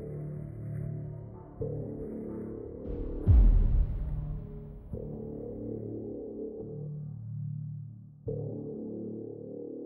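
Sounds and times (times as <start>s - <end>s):
suspense music: 0.0s - 6.7s.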